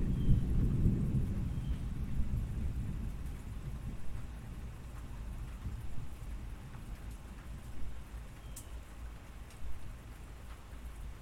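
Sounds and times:
gentle rain hiss: 0.0s - 11.2s
raindrops ticking on tin: 3.1s - 11.2s.

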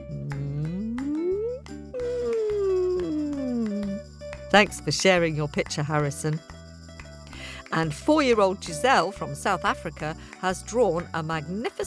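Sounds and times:
voice imitating a sad whale: 0.0s - 4.0s
speech: 4.5s - 6.5s, 7.7s - 11.8s.

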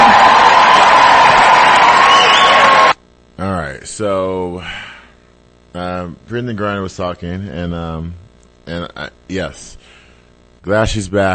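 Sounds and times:
crowd cheering and applauding to welcome someone home: 0.0s - 3.0s
speech: 4.0s - 4.8s, 5.8s - 10.0s, 10.6s - 11.3s.

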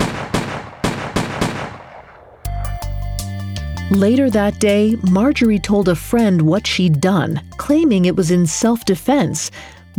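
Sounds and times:
revolver gunshots: 0.0s - 2.5s
sustained low musical drone: 2.5s - 9.9s
speech: 3.9s - 9.9s.

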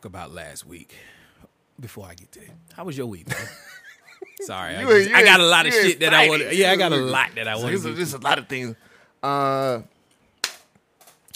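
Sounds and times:
speech: 0.0s - 1.2s, 1.8s - 9.9s
laughter: 3.3s - 8.6s
held vocal tone: 4.6s - 8.8s
hand clap: 10.4s - 11.3s.

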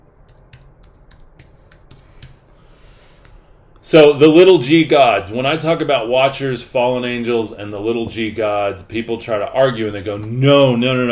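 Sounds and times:
typing a title on a computer keyboard: 0.2s - 2.4s
speech: 3.9s - 11.1s.

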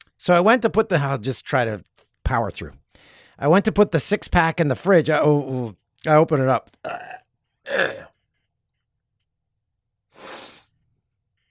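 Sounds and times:
speech: 0.2s - 8.1s
person gagging: 6.9s - 8.1s.

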